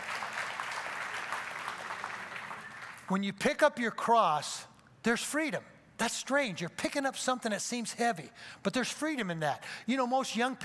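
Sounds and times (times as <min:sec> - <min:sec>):
crowd clapping hands: 0:00.0 - 0:03.1
speech: 0:03.1 - 0:10.6.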